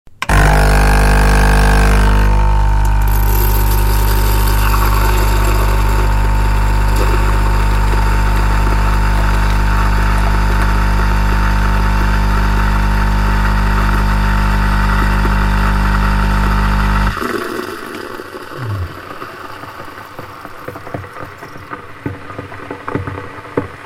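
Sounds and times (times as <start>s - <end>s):
coffee maker: 0.1s - 23.7s.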